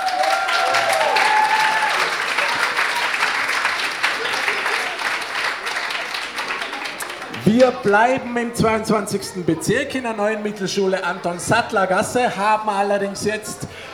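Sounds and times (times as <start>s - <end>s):
audience applause at a school contest: 0.0s - 8.0s
speech: 7.5s - 13.8s.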